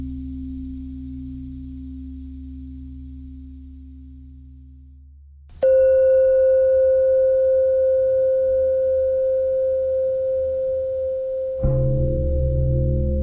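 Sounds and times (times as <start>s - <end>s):
pentatonic bell melody: 5.6s - 13.2s.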